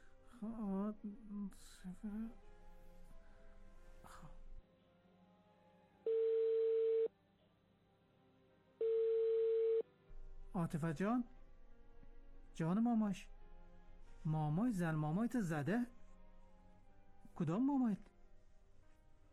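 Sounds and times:
speech: 0.4 - 2.6, 10.7 - 11.4, 12.6 - 13.4, 14.2 - 16.0, 17.4 - 18.1
telephone dial tone: 6.1 - 7.1, 8.8 - 9.8.

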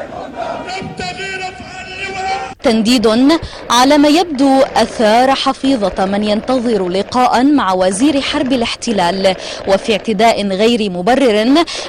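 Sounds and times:
crowd chanting slogans at a martyr's funeral at the Martyrs' roundabout: 0.0 - 9.0
speech: 2.6 - 11.8.

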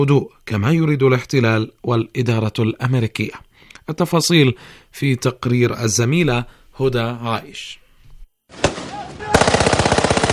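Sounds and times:
speech: 0.0 - 7.8, 8.5 - 8.7
gunfire at an Israeli army checkpoint: 8.5 - 10.3.

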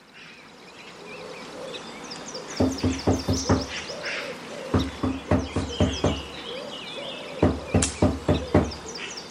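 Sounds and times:
knocking on a door: 2.6 - 3.7, 4.7 - 6.3, 7.4 - 8.8.

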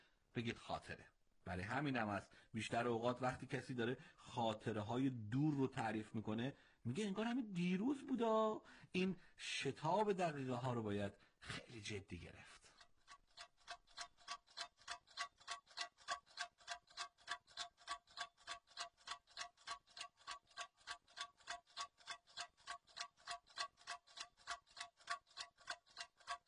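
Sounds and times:
speech: 0.4 - 12.8
clock ticking: 12.7 - 26.4.

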